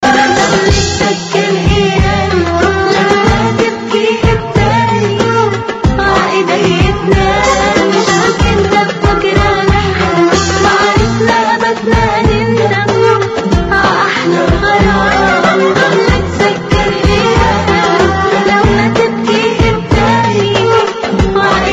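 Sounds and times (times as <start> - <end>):
Arabic love blues music: 0.0 - 21.7.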